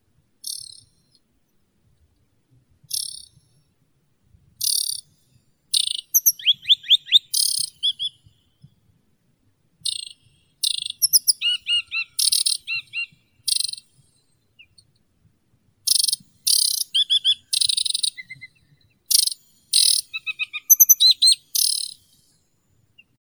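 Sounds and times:
aquatic warbler Acrocephalus paludicola calling: 0:05.8 - 0:08.2, 0:09.9 - 0:13.8, 0:15.9 - 0:22.0.

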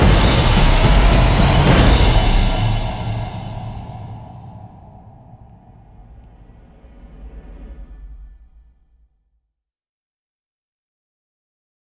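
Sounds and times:
drums building: 0:00.0 - 0:09.3.

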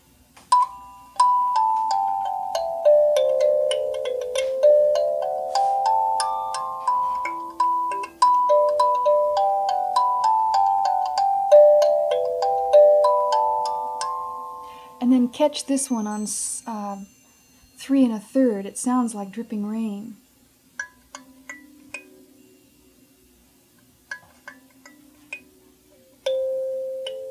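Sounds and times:
kalimba notes played back at slow speed: 0:00.0 - 0:18.0, 0:24.1 - 0:27.2
speech: 0:15.4 - 0:17.2, 0:17.8 - 0:20.2.

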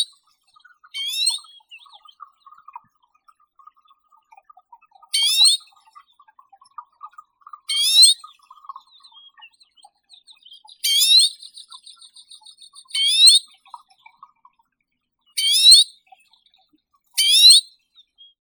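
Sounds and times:
Arctic redpoll Acanthis hornemanni calling: 0:01.0 - 0:02.2, 0:05.1 - 0:05.7, 0:07.7 - 0:08.3, 0:10.6 - 0:13.4, 0:15.4 - 0:15.9, 0:17.2 - 0:17.7.

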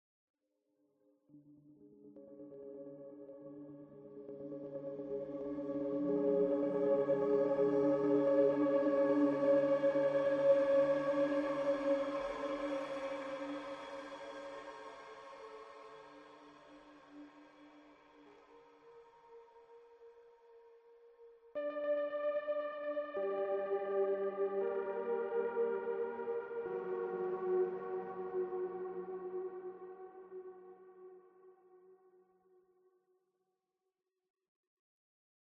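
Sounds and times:
ambient music: 0:01.4 - 0:19.0, 0:21.6 - 0:31.2.

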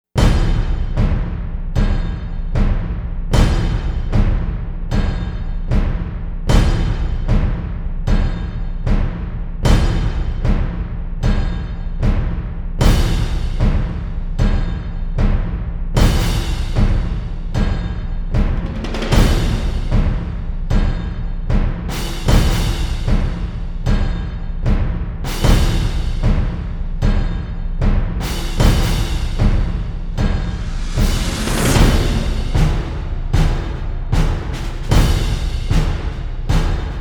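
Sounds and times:
drums: 0:00.1 - 0:36.9.

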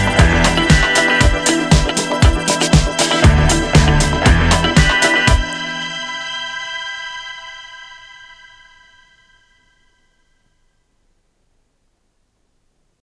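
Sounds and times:
instrumental music: 0:00.0 - 0:10.4.

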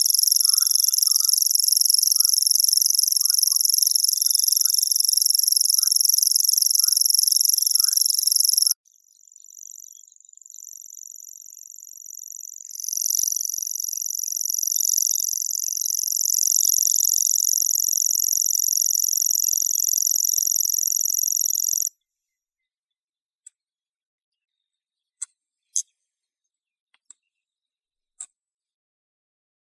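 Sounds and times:
Locustella naevia grasshopper warbler: 0:00.0 - 0:21.9.

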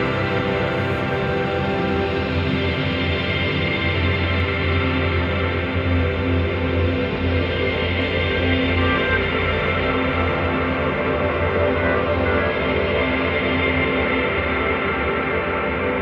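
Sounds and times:
ambience: 0:00.0 - 0:16.0
piano: 0:00.0 - 0:16.0.

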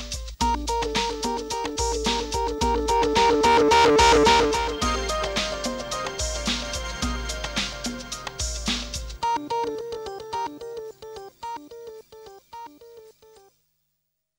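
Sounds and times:
ambient music mix: 0:00.6 - 0:10.8.

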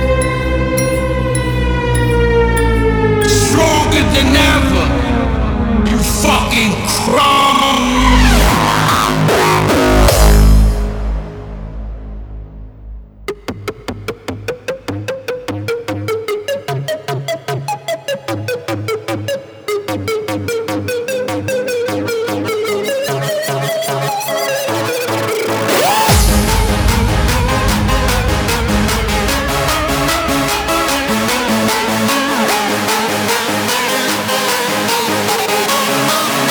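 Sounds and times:
remixed music: 0:00.0 - 0:36.4.

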